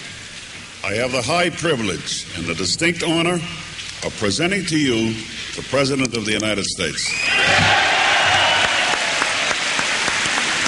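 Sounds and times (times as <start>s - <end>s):
speech: 0.8s - 7.9s
standing crowd applauding: 7.5s - 10.6s.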